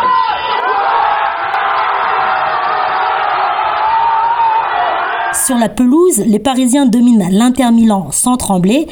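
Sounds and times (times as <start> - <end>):
football supporters cheering and shouting in bar: 0.0 - 5.5
speech: 5.5 - 8.9.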